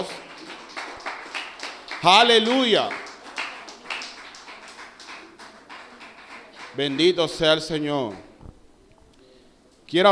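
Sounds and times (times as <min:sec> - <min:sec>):
speech: 0:00.0 - 0:00.3, 0:02.0 - 0:03.0, 0:06.8 - 0:08.3
audience applause: 0:00.0 - 0:08.3.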